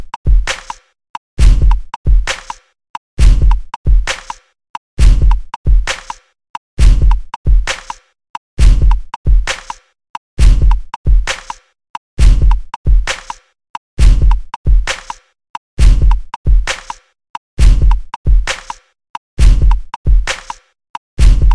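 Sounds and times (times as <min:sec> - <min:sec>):
beats: 0:00.0 - 0:00.8, 0:01.4 - 0:02.6, 0:03.2 - 0:04.4, 0:05.0 - 0:06.2, 0:06.8 - 0:08.0, 0:08.6 - 0:09.8, 0:10.4 - 0:11.6, 0:12.2 - 0:13.4, 0:14.0 - 0:15.2, 0:15.8 - 0:17.0, 0:17.6 - 0:18.8, 0:19.4 - 0:20.6, 0:21.2 - 0:21.5.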